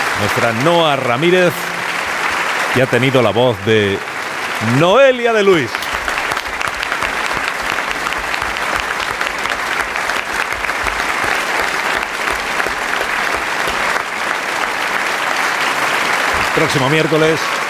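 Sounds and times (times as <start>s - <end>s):
audience applause: 0.0s - 17.6s
speech: 0.2s - 1.7s, 2.8s - 5.8s, 16.6s - 17.6s.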